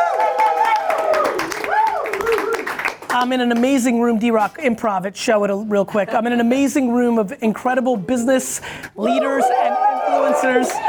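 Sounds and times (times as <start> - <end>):
audience clapping: 0.0 - 3.9, 10.0 - 10.8
speech: 3.2 - 10.8.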